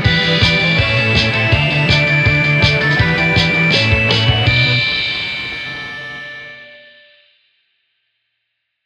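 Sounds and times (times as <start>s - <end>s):
instrumental music: 0.0s - 6.6s.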